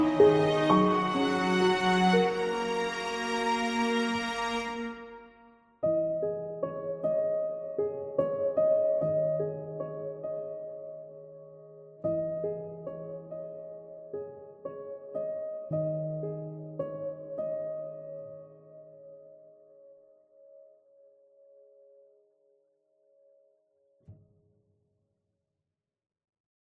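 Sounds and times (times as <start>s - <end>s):
piano and strings cover: 0.0s - 21.0s.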